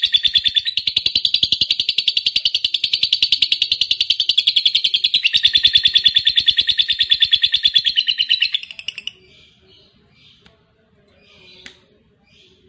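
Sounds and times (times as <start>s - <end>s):
lovebird chattering: 0.0s - 9.2s.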